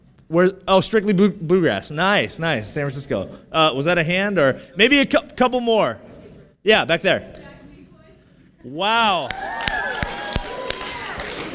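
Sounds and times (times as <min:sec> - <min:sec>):
speech: 0:00.3 - 0:07.4, 0:08.6 - 0:09.5
scattered audience claps in a reverberant hall: 0:09.2 - 0:11.5.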